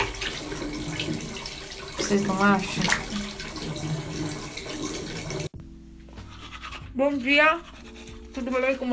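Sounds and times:
tap water running while brushing teeth: 0.0 - 5.6
speech: 2.1 - 3.0, 7.0 - 7.7, 8.4 - 8.9.

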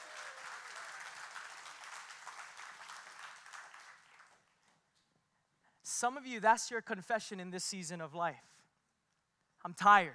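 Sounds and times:
round of applause: 0.0 - 4.8
speech: 6.0 - 8.5, 9.6 - 10.1.

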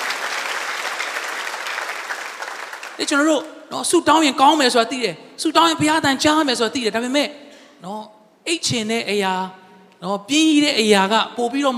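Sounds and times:
church congregation clapping in praise during a Sunday sermon: 0.0 - 3.3
speech: 3.0 - 11.7.

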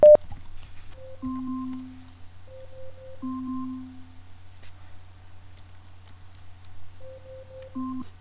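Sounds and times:
Alexa smart speaker timer alarm going off: 0.0 - 0.2, 1.0 - 4.3, 7.0 - 8.1.

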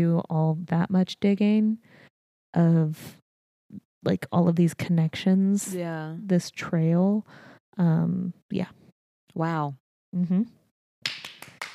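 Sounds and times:
speech: 0.0 - 10.6
hand clapping: 11.0 - 11.7.

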